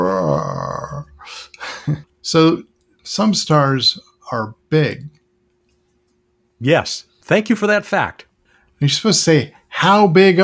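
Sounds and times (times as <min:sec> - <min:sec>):
voice imitating a lion's roar: 0:00.0 - 0:01.2
speech: 0:01.9 - 0:05.1, 0:06.6 - 0:10.4.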